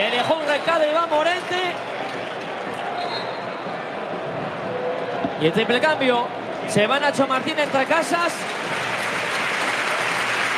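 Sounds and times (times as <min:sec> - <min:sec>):
speech: 0:00.0 - 0:01.9, 0:05.4 - 0:08.7
stadium crowd ovation at El Molinón: 0:00.0 - 0:10.5.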